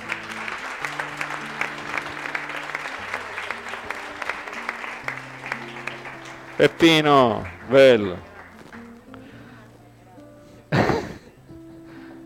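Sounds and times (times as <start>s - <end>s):
audience applause: 0.0s - 9.0s
speech: 6.6s - 8.3s.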